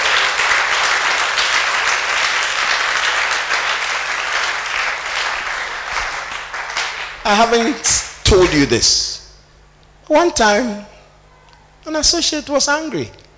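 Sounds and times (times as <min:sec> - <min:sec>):
crowd applauding: 0:00.0 - 0:07.8
speech: 0:07.3 - 0:09.1, 0:10.1 - 0:10.9, 0:11.9 - 0:13.2.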